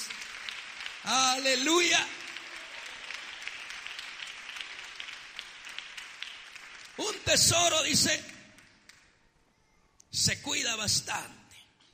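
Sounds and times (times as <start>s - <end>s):
crowd applauding: 0.0s - 9.1s
speech: 1.0s - 2.2s, 7.0s - 8.3s, 10.2s - 11.4s.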